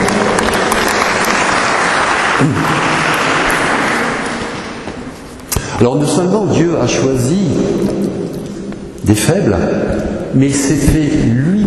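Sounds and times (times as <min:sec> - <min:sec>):
audience applause: 0:00.0 - 0:05.1
speech: 0:02.4 - 0:02.8, 0:05.8 - 0:08.1, 0:09.1 - 0:11.6.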